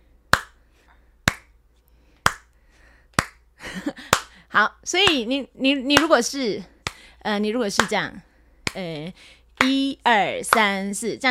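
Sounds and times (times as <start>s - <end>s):
hand claps keeping time on two and four: 0.3s - 0.6s, 1.3s - 1.5s, 2.2s - 2.5s, 3.1s - 3.4s, 4.1s - 4.4s, 6.8s - 7.0s, 9.6s - 9.8s, 10.5s - 10.7s
speech: 4.6s - 11.2s.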